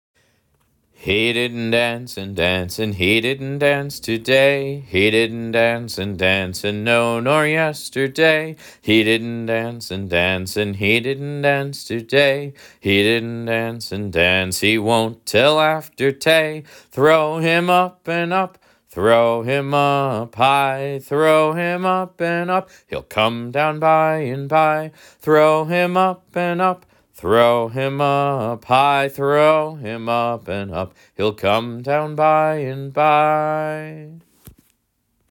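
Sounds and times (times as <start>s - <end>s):
person singing: 1.0s - 34.3s.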